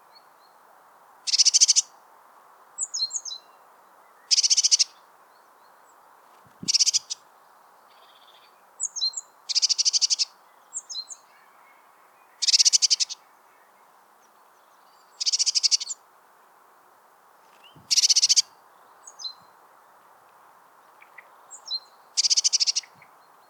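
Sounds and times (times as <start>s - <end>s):
Eurasian blue tit churring rattles: 4.3s - 4.9s, 6.6s - 7.2s, 8.0s - 10.3s, 12.4s - 13.2s, 15.2s - 16.0s, 17.8s - 18.4s, 21.6s - 23.0s.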